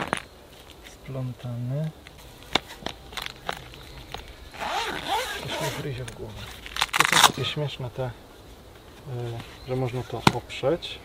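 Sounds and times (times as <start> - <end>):
speech: 1.1 - 2.1, 5.4 - 6.6, 7.2 - 8.3, 9.0 - 11.0
zipper on a solar panel carrying case opening: 4.5 - 7.4.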